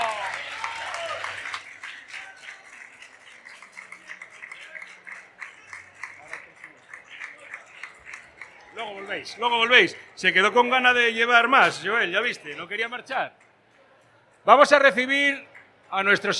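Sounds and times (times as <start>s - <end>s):
audience applause: 0.0s - 9.9s
speech: 8.8s - 13.4s, 14.4s - 16.3s.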